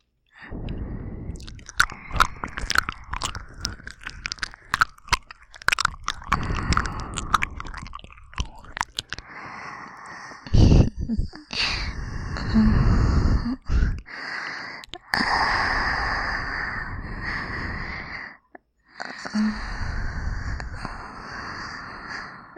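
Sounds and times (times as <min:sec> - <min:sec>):
aroused breathing: 0:00.3 - 0:22.5
binaural ear licking on both ears: 0:00.6 - 0:15.5.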